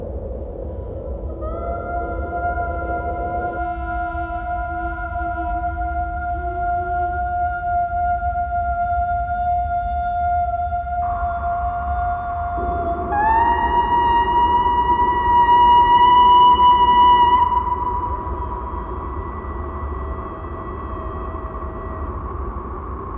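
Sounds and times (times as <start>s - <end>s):
singing: 1.3s - 22.4s.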